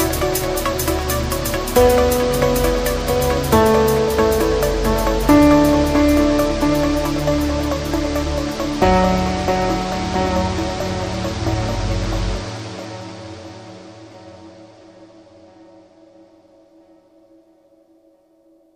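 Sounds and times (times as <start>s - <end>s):
dubstep mix: 0.0s - 12.4s.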